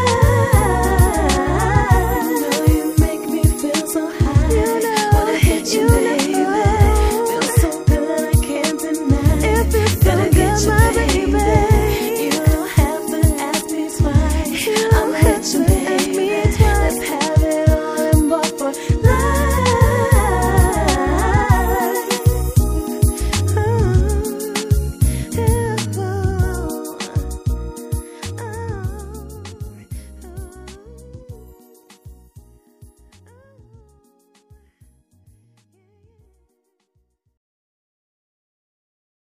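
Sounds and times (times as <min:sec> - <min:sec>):
hip hop rap: 0:00.0 - 0:27.6, 0:28.2 - 0:31.5.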